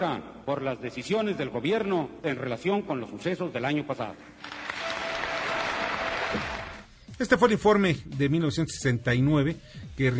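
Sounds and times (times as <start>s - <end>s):
speech: 0.0s - 4.6s, 7.2s - 10.1s
archival crowd applause after presidential speech: 4.4s - 6.9s.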